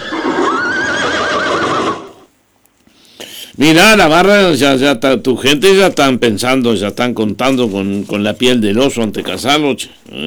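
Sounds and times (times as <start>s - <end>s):
horse neighing: 0.0s - 2.3s
speech: 3.6s - 10.2s.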